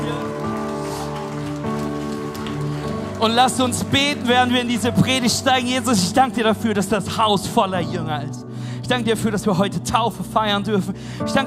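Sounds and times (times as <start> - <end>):
audience applause: 0.0 - 5.9
speech: 3.2 - 11.4.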